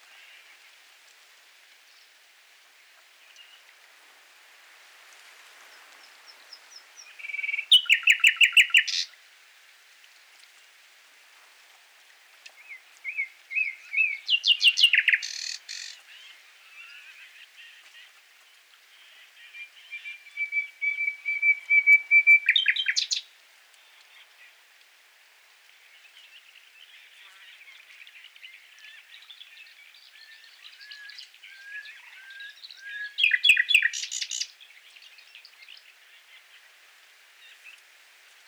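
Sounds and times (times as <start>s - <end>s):
Common nightingale song: 7.0s - 9.1s, 12.6s - 17.8s, 19.1s - 23.3s, 26.8s - 36.5s.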